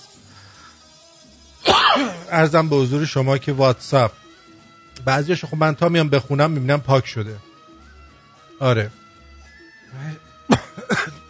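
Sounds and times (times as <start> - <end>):
person coughing: 1.6 - 2.3, 10.5 - 11.2
person clearing their throat: 1.7 - 2.3, 10.5 - 11.2
speech: 2.0 - 4.2, 5.0 - 7.5, 8.6 - 9.0.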